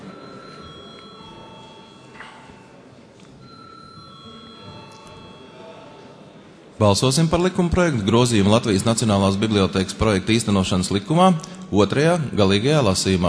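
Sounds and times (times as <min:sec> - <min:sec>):
parliamentary session bell ringing: 0:00.0 - 0:02.8, 0:03.4 - 0:06.2
murmur of voices: 0:00.0 - 0:13.2
speech: 0:06.8 - 0:13.2.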